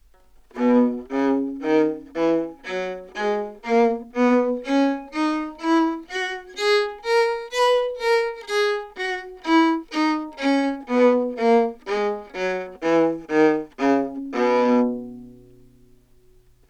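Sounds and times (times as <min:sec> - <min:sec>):
baroque viola scale played detache: 0:00.0 - 0:16.6.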